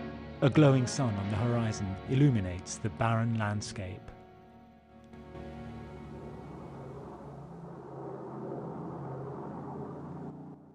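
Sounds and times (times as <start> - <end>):
speech: 0.4 - 4.2
small propeller aircraft flying overhead and swooping low over a convoy: 5.1 - 10.7.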